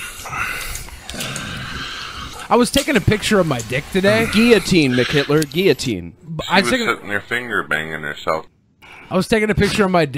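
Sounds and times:
breathing played from a soundboard: 0.0 - 2.5
speech: 2.5 - 8.5, 9.1 - 10.1.

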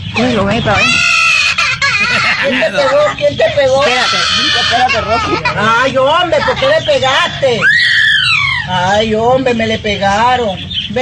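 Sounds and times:
speech: 0.2 - 1.1, 2.0 - 7.9, 8.7 - 11.0
parrot crying like a child: 0.8 - 5.9, 7.6 - 8.7
laughter: 0.8 - 7.2.

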